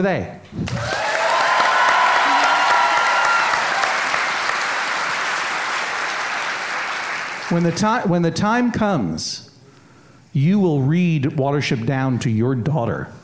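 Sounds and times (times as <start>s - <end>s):
speech: 0.0s - 1.1s, 7.5s - 9.5s, 10.3s - 13.2s
faint cheers: 0.6s - 5.1s
audience applause: 0.6s - 8.0s.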